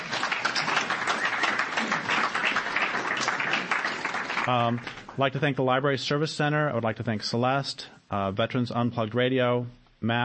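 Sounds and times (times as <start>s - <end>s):
crowd applause: 0.0s - 5.1s
speech: 4.5s - 10.2s.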